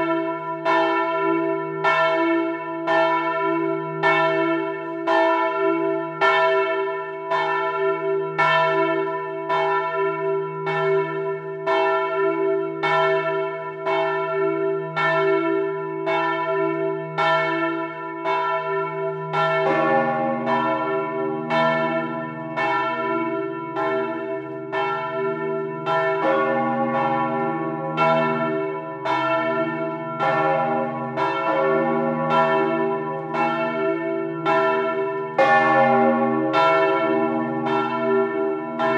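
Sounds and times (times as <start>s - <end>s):
church bells ringing: 0.0s - 38.9s.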